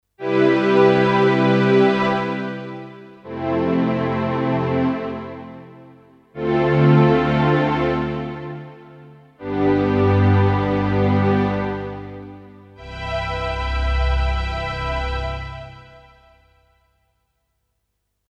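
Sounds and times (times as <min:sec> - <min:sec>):
Casio PX-S1100 strings: 0:00.2 - 0:16.6.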